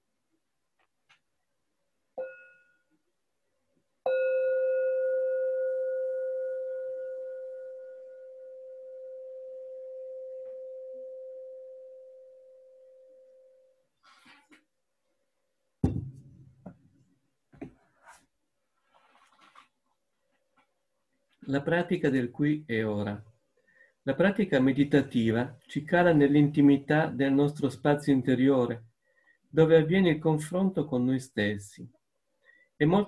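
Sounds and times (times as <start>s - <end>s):
meditation bell ringing: 4.1s - 13.8s
speech: 21.5s - 23.3s, 24.0s - 28.9s, 29.5s - 32.0s, 32.8s - 33.0s.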